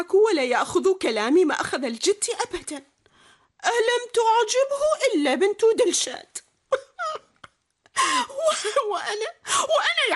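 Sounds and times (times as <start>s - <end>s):
speech: 0.0s - 2.9s, 3.6s - 6.8s, 8.0s - 10.1s
woman sobbing in a dramatized story: 6.7s - 10.0s.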